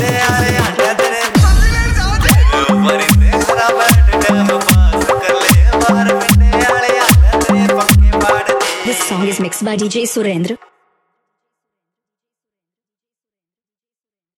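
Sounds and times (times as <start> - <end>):
Haryanvi DJ song remix: 0.0 - 10.6.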